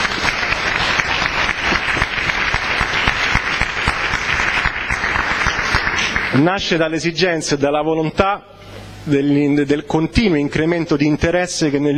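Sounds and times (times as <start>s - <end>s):
welcome-back audience applause: 0.0s - 6.4s
speech: 6.4s - 11.9s.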